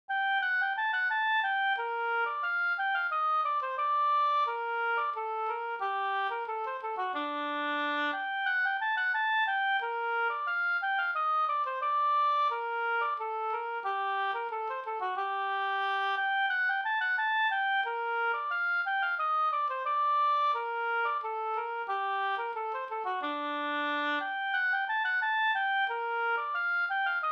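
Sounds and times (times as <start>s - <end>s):
polska folk dance tune: 0.1s - 27.3s.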